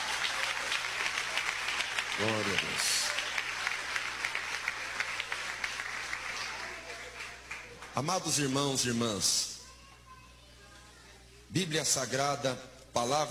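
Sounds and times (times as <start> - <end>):
audience applauding: 0.0 - 8.5
speech: 2.2 - 3.1, 8.0 - 9.5, 11.5 - 13.2.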